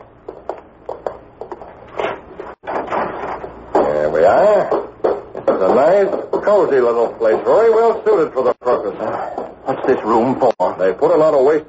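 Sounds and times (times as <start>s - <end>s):
door opening: 1.9s - 4.1s
speech: 5.7s - 11.6s.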